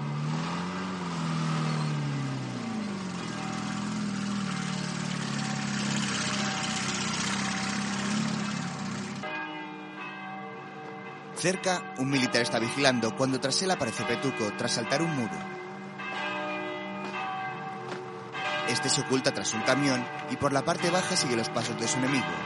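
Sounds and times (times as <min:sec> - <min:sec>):
tank engine starting and driving off in a 1970 war film: 0:00.0 - 0:09.3
ringing bells: 0:01.6 - 0:22.4
speech: 0:11.4 - 0:15.6, 0:18.8 - 0:22.4.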